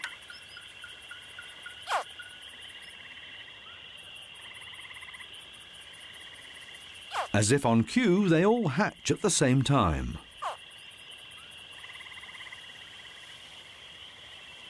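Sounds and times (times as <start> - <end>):
baby crocodiles chirping inside eggs: 0.0 - 2.4, 7.1 - 7.4, 10.4 - 10.6
speech: 7.3 - 10.3.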